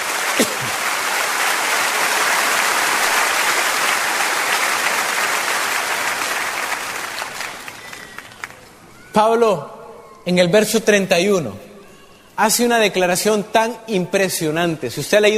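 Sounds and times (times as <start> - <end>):
audience applause: 0.0 - 8.9
speech: 9.2 - 11.6, 12.4 - 15.3.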